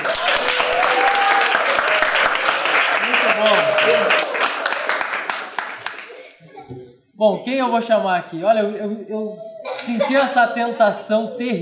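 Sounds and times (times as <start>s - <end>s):
audience applause: 0.0s - 6.4s
speech: 7.2s - 11.6s.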